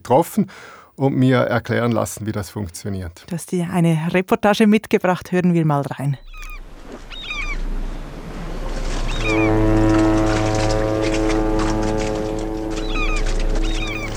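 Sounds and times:
speech: 0:00.1 - 0:07.1
large container ship passing by: 0:06.6 - 0:14.1.

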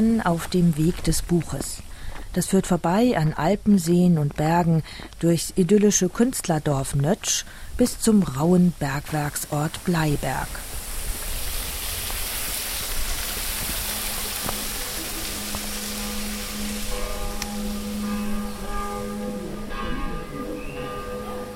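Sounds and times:
speech: 0:00.0 - 0:10.7
church tower bells ringing in Fresach: 0:13.8 - 0:21.5.

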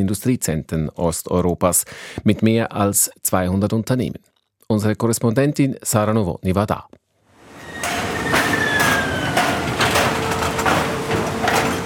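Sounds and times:
speech: 0:00.0 - 0:07.0
refrigerator parts clanking in assembly factory: 0:07.5 - 0:11.8.

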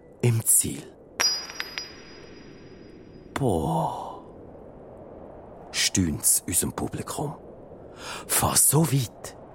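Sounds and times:
speech: 0:00.2 - 0:01.0, 0:03.4 - 0:04.1, 0:06.0 - 0:07.4, 0:08.0 - 0:09.4
metal horseshoe clinking onto target stake: 0:01.2 - 0:02.6.

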